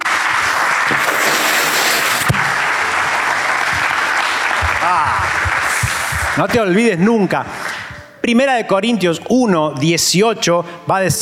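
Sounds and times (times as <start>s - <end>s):
audience applause: 0.0s - 7.8s
scattered voices and cheers: 2.3s - 6.7s
speech: 6.4s - 7.6s, 8.2s - 11.1s.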